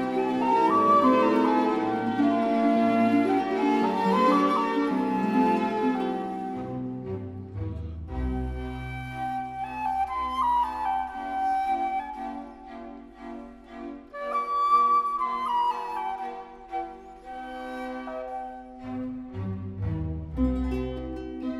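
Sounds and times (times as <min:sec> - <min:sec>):
flute and harp concerto: 0:00.0 - 0:21.5.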